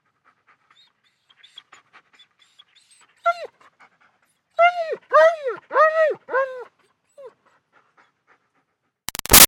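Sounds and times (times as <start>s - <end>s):
German Shepherd dog whining: 1.4s - 3.6s, 4.6s - 7.3s.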